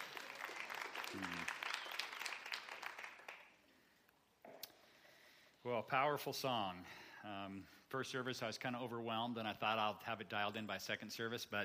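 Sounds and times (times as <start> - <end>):
audience applauding: 0.0 - 3.6
speech: 1.1 - 1.6, 5.6 - 11.6.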